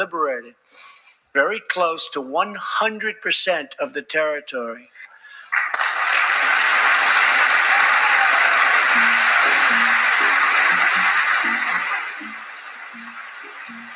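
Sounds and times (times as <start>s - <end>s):
speech: 0.0s - 5.0s
audience applause during speech: 5.5s - 13.9s.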